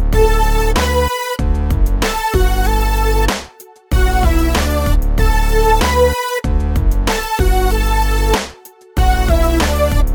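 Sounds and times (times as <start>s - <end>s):
simple melody in D major: 0.2s - 1.4s, 2.0s - 6.5s, 7.1s - 10.1s.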